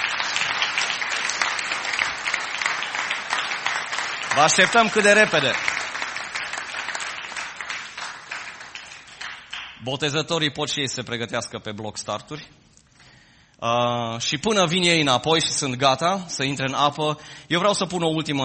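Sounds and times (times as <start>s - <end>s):
audience applauding: 0.0s - 9.8s
speech: 4.4s - 5.7s, 9.8s - 12.6s, 13.6s - 18.4s.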